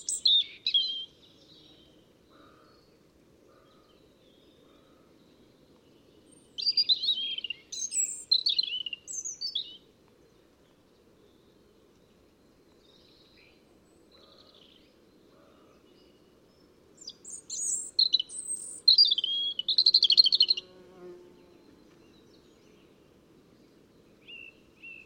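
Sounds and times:
European robin Erithacus rubecula singing: 0.0 - 1.9, 6.3 - 9.8, 17.0 - 20.8, 24.2 - 25.0.

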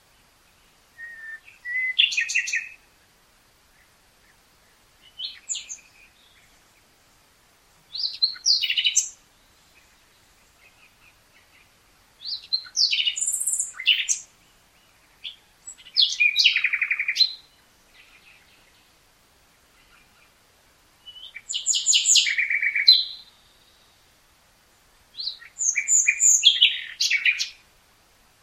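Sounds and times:
soft background hiss: 0.0 - 28.4
common nightingale singing varied phrases: 0.7 - 2.9, 3.7 - 6.6, 7.9 - 18.9, 21.0 - 24.0, 25.1 - 27.6.

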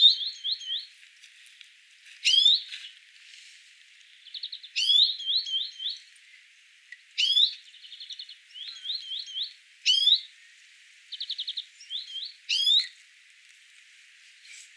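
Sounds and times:
greenfinch Chloris chloris chirping and trilling: 0.0 - 0.9, 4.3 - 6.1, 7.2 - 10.3, 11.1 - 12.9.

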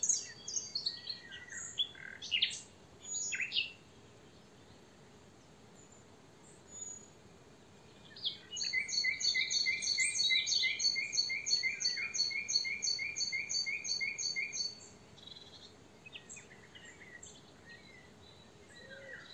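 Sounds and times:
common nightingale Luscinia megarhynchos singing: 0.0 - 3.8, 7.9 - 19.3.

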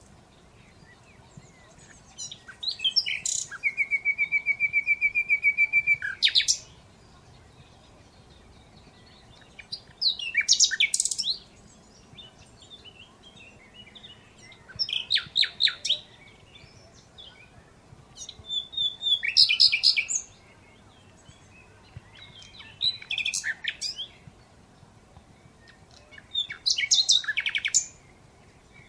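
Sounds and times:
Common Nightingale singing: 0.0 - 28.8.

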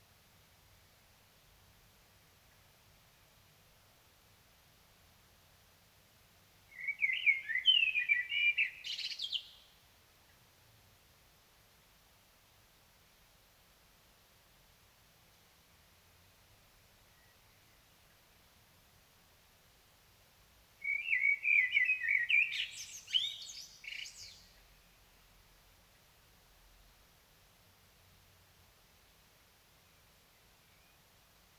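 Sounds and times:
Common blackbird singing: 6.7 - 9.6, 20.8 - 25.0.

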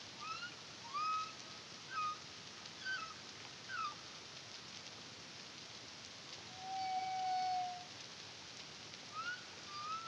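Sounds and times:
steady hiss: 0.0 - 10.0
humpback whale song chirps and whistle: 0.2 - 2.2, 6.6 - 7.9, 9.2 - 10.0.

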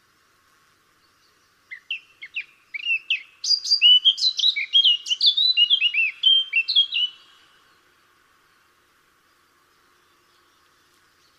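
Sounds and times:
Eurasian blackcap Sylvia atricapilla song of hurried warbling and mellow whistles: 1.7 - 7.2.

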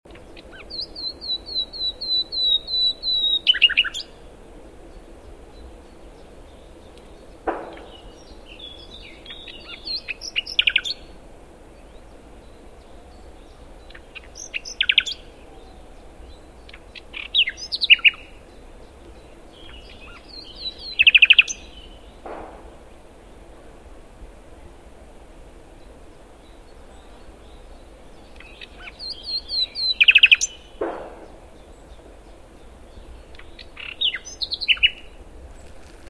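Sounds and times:
Luscinia megarhynchos singing: 0.1 - 22.6, 25.8 - 35.9.

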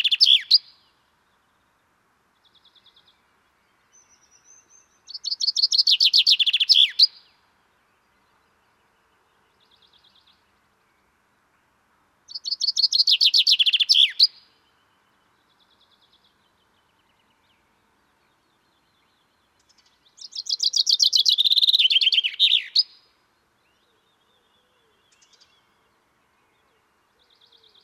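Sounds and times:
common chaffinch Fringilla coelebs singing descending trilled phrases: 0.0 - 0.8, 5.1 - 7.3, 12.3 - 14.5, 20.1 - 23.1.

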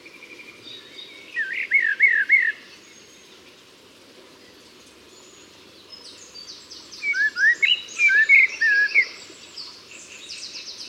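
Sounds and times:
common blackbird Turdus merula giving fluty song phrases: 0.0 - 3.2, 4.4 - 10.8.

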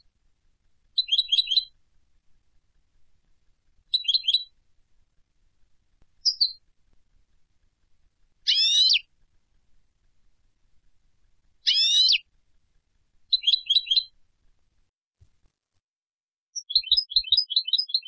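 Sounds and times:
European goldfinch calls: 1.0 - 1.7, 3.9 - 4.5, 6.2 - 6.6, 8.5 - 9.1, 11.6 - 12.2, 13.3 - 14.1, 16.6 - 18.0.

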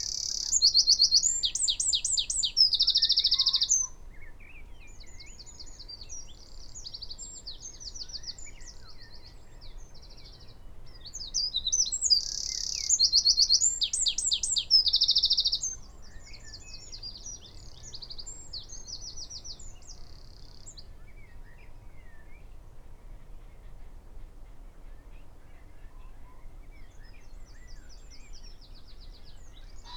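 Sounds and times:
Eurasian wren Troglodytes troglodytes singing: 0.0 - 4.0, 4.8 - 20.9, 27.8 - 29.9.

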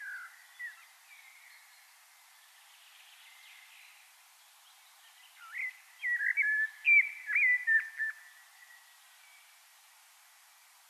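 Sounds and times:
common blackbird whistling: 5.4 - 8.2.

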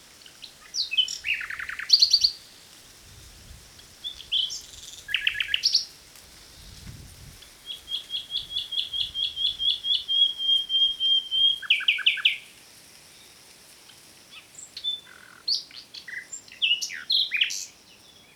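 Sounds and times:
common nightingale singing: 0.3 - 2.6, 4.0 - 5.9, 7.4 - 12.5, 14.3 - 18.3.

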